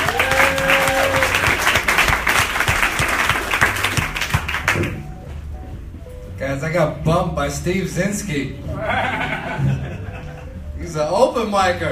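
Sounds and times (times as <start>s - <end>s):
faint whoops: 0.0s - 1.6s
audience applause for a comedian: 0.0s - 5.0s
speech: 6.5s - 9.8s, 10.9s - 11.8s
laughter: 8.7s - 10.7s.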